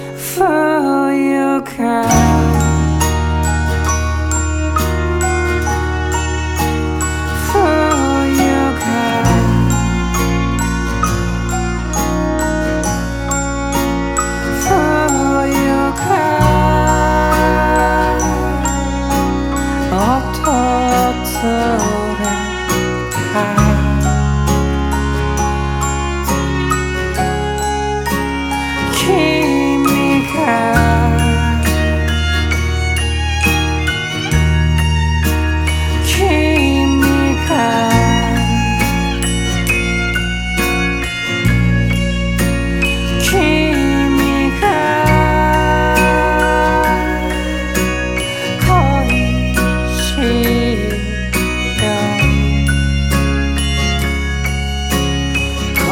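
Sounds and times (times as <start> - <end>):
country music track: 0.0 - 55.9.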